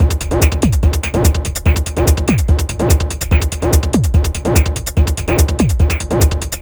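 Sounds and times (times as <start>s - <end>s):
electronic drums and percussion: 0.0s - 6.6s.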